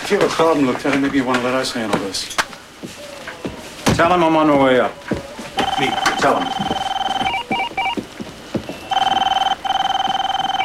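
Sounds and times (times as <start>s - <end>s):
speech: 0.1s - 3.1s, 4.0s - 6.7s
telephone ringing: 5.6s - 8.0s, 8.7s - 10.6s.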